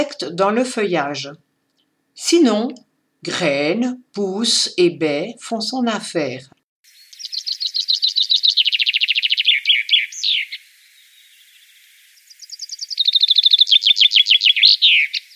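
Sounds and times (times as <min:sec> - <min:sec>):
speech: 0:00.0 - 0:01.4, 0:02.2 - 0:06.6
bird song, a repetitive descending phrase ending in a trill: 0:06.9 - 0:15.3.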